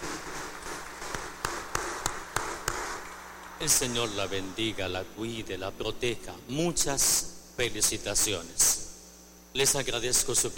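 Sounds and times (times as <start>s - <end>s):
loud congratulatory applause: 0.0s - 4.3s
speech: 3.6s - 8.8s, 9.5s - 10.5s.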